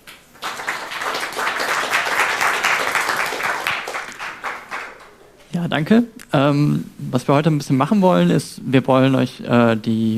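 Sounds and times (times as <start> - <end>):
audience applause: 0.0 - 5.2
speech: 5.6 - 10.1.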